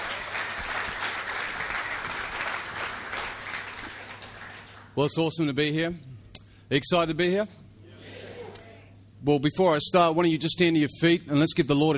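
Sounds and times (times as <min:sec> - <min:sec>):
church congregation applauding to welcome a guest speaker: 0:00.0 - 0:05.2
speech: 0:05.0 - 0:06.1, 0:06.7 - 0:07.6, 0:09.2 - 0:11.9.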